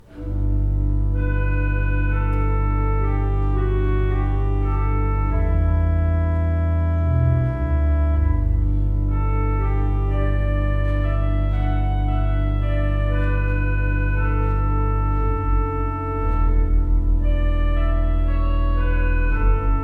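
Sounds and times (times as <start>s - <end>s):
pipe organ: 0.0s - 19.8s.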